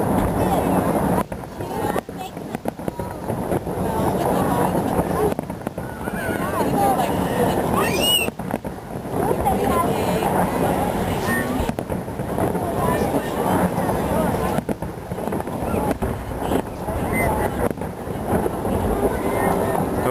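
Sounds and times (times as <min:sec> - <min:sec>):
New Year's Eve fireworks bursting in Ottawa: 0:00.0 - 0:20.0
crowd murmur: 0:00.0 - 0:20.0
firework rising whistle: 0:07.8 - 0:08.3.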